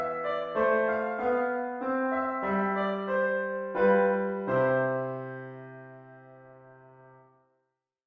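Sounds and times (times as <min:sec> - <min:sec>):
clarinet in a concerto: 0:00.0 - 0:05.4
piano: 0:00.0 - 0:07.5.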